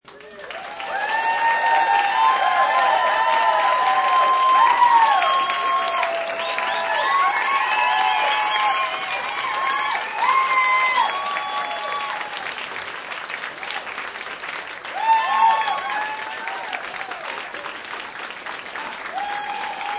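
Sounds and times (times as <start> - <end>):
applause in a bar: 0.0 - 19.9
group cheering and hooting in a bar: 0.2 - 12.5, 14.9 - 17.4, 18.8 - 19.9
group whistling: 5.0 - 9.3.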